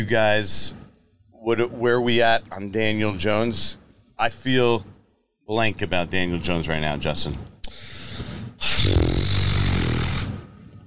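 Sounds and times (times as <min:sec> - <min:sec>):
speech: 0:00.0 - 0:00.8, 0:01.4 - 0:04.9, 0:05.5 - 0:07.9
wet raspberry blown with the lips imitating a fart: 0:08.6 - 0:10.8.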